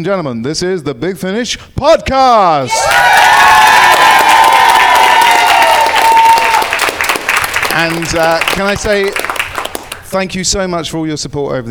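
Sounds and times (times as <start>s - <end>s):
speech: 0.0s - 3.4s, 7.8s - 9.3s, 10.1s - 11.7s
live audience cheering: 2.7s - 10.0s.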